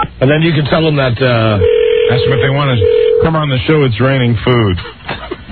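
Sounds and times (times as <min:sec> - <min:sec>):
speech: 0:00.2 - 0:05.0
touch-tone beeps of a phone number being dialed: 0:01.6 - 0:03.3.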